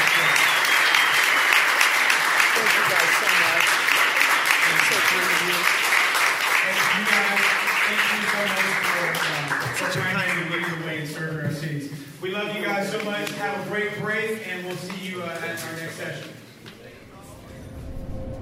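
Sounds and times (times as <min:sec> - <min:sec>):
crowd applauding: 0:00.0 - 0:10.8
speech: 0:09.3 - 0:16.4.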